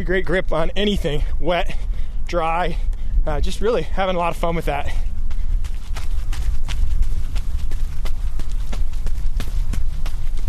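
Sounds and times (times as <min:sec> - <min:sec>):
speech: 0:00.0 - 0:05.1
running footsteps on a mile-long crushed gravel running track: 0:03.5 - 0:10.4.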